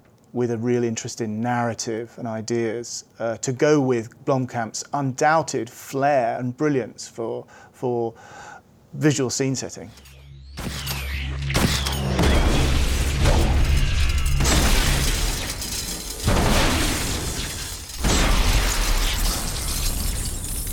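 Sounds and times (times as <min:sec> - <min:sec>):
speech: 0:00.3 - 0:10.7
futuristic weapon firing in a science-fiction film: 0:10.0 - 0:20.7.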